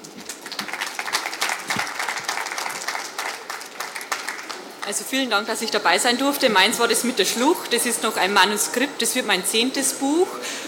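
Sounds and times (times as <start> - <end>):
audience applause: 0.0 - 5.6
speech: 4.9 - 10.6.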